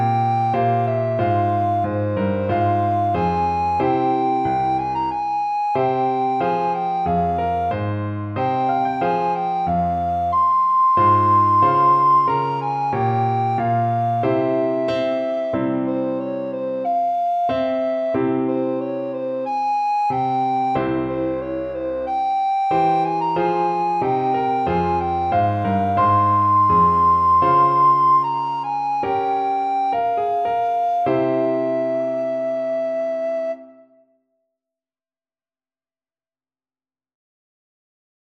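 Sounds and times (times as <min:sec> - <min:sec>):
recorder: 0:00.0 - 0:33.4.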